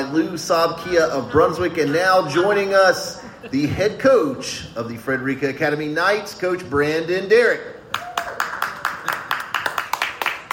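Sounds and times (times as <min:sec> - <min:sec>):
speech: 0:00.1 - 0:08.0
audience clapping: 0:07.9 - 0:10.5.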